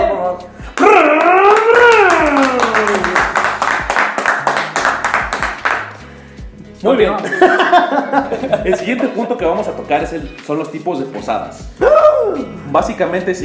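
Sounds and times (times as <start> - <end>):
speech: 0.3 - 0.6, 6.8 - 13.4
hand claps: 0.7 - 6.1
voice whooping cheer: 0.8 - 3.4, 11.8 - 12.5
laughter: 7.2 - 9.4.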